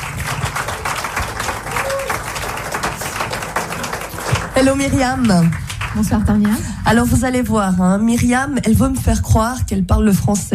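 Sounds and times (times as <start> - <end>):
audience applause: 0.0 - 6.8
speech: 4.6 - 10.5.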